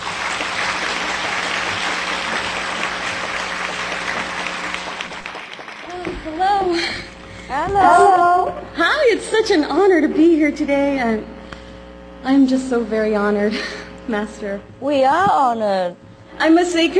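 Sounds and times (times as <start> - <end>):
audience applause: 0.0 - 7.2
speech: 6.4 - 11.4, 12.2 - 16.9.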